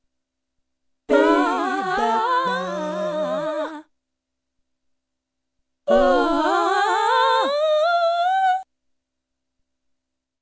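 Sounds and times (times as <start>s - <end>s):
woman scat singing: 1.1s - 3.9s, 5.9s - 8.6s.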